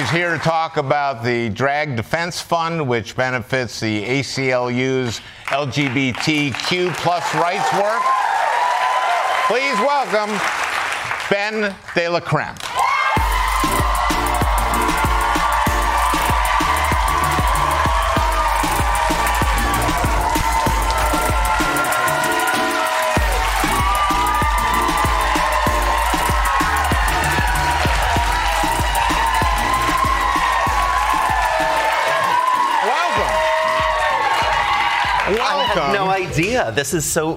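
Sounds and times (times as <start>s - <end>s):
studio audience clapping on a talk show: 0.0s - 0.9s, 5.0s - 36.2s
speech: 0.0s - 8.4s, 9.5s - 10.6s, 11.3s - 12.7s, 35.7s - 37.3s
studio audience whooping: 6.8s - 10.4s, 12.7s - 36.3s.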